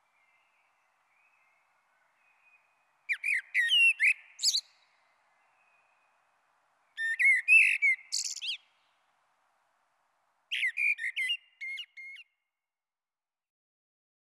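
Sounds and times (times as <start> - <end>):
common blackbird singing melodious whistled phrases with high chattering twitters: 0.0 - 6.2, 6.9 - 8.8, 10.5 - 12.4.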